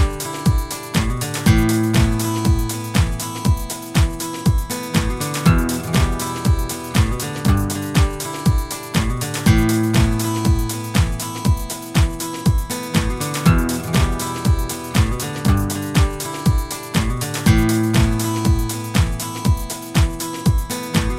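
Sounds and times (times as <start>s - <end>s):
techno guitar: 0.0s - 21.1s.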